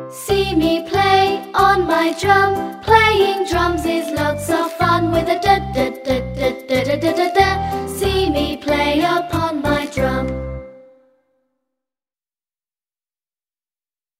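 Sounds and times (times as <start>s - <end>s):
jolly jingle: 0.2s - 11.1s.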